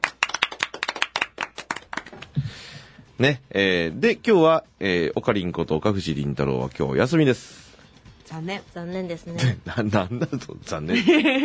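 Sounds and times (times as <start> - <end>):
small group clapping: 0.0 - 2.4
speech: 3.2 - 7.6, 8.3 - 11.4
laughter: 9.4 - 11.4.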